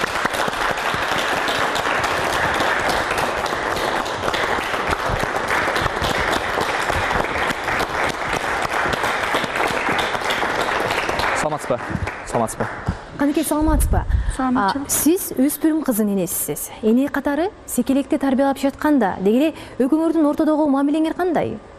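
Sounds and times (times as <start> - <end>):
audience applauding to welcome a parent invited to speak: 0.0 - 12.9
speech: 12.4 - 21.7.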